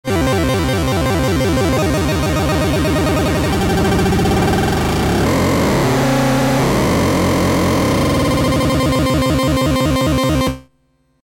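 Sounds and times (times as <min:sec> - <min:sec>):
MIDIbox SID chip synthesizer: 0:00.1 - 0:10.7.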